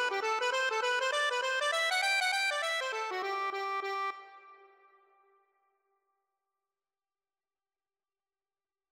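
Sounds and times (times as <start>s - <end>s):
accordion: 0.0s - 5.0s.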